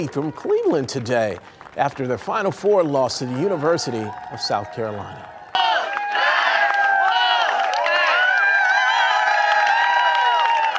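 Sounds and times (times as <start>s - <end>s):
speech: 0.0s - 5.3s
fans cheering and shouting outdoors: 0.0s - 10.7s
people clapping: 0.0s - 10.7s.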